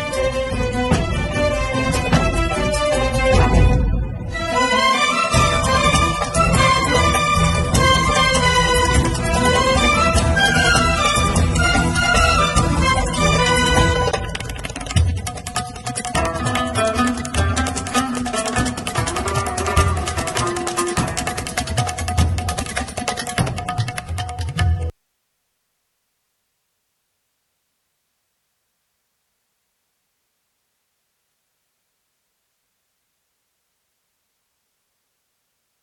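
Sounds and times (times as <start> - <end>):
Romani instrumental music: 0.0 - 25.0.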